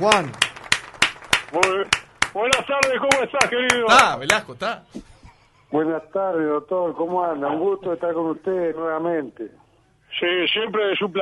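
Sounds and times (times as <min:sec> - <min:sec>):
speech: 0:00.0 - 0:00.5, 0:01.5 - 0:05.1, 0:05.7 - 0:11.2
applause of sharp claps: 0:00.0 - 0:04.5.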